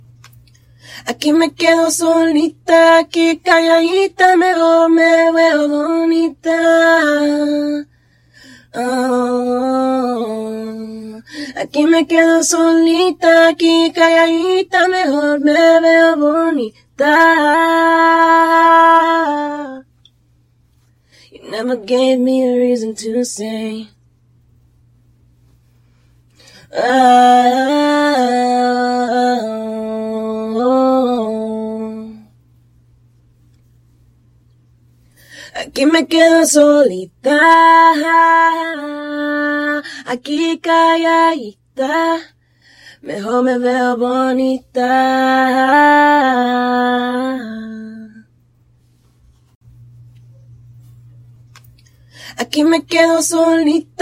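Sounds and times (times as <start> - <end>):
80s a cappella pop singing in E minor: 1.0 - 8.0, 8.6 - 19.9, 21.2 - 24.0, 26.4 - 32.4, 35.4 - 48.3, 52.2 - 53.9.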